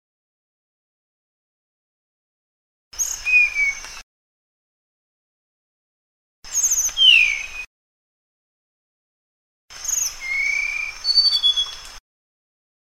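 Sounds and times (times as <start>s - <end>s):
Sunda blue flycatcher song of thin high whistled notes: 3.0s - 3.8s, 6.5s - 7.7s, 9.8s - 11.8s.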